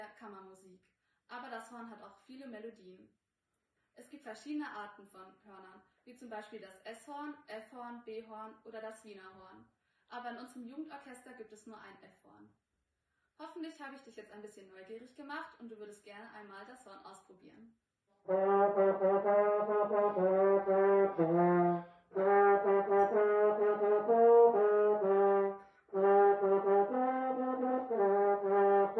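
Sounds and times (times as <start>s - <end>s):
horn: 18.2s - 28.9s.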